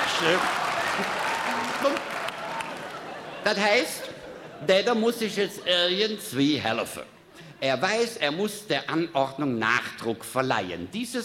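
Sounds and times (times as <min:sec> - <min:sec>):
audience applause at a comedic talk on regional grammar: 0:00.0 - 0:03.4
speech: 0:00.2 - 0:01.2, 0:01.8 - 0:02.2, 0:03.4 - 0:11.2
laughter: 0:00.2 - 0:06.0.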